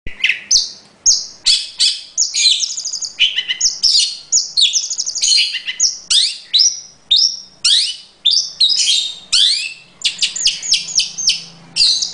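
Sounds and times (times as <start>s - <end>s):
Long-tailed Shrike singing combination song: 0.1s - 12.1s.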